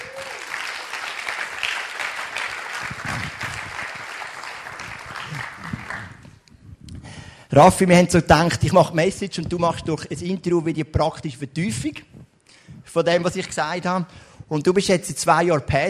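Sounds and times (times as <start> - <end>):
audience applause: 0.0 - 6.4
speech: 7.6 - 12.1, 13.0 - 15.8.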